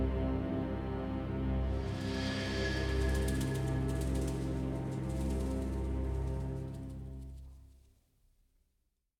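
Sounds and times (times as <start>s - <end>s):
ambient fight theme music: 1.0s - 7.3s.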